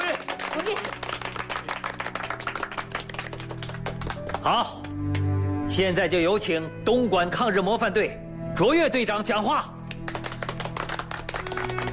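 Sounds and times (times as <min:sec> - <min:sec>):
applause: 0:00.0 - 0:05.2, 0:09.9 - 0:11.9
speech: 0:00.6 - 0:01.1, 0:04.4 - 0:09.7.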